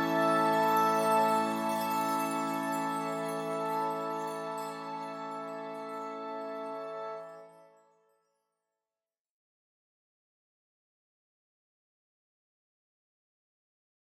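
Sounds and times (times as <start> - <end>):
oboe ensemble: 0.0 - 7.6.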